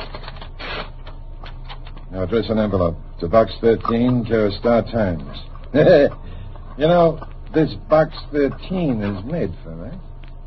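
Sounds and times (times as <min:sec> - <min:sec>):
sheet of paper drawn out of a typewriter: 0:00.0 - 0:01.1
speech: 0:02.1 - 0:10.1.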